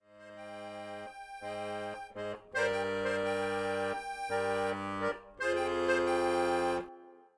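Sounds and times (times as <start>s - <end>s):
accordion practice: 0.0s - 7.3s.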